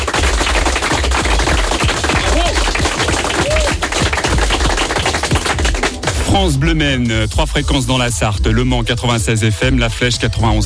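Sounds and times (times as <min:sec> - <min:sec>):
studio audience applauding: 0:00.0 - 0:06.4
speech: 0:06.4 - 0:10.6.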